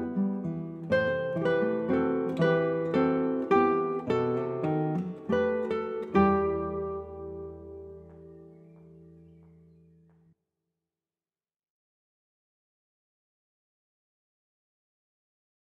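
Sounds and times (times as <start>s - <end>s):
Spanish folk song: 0.0s - 9.8s.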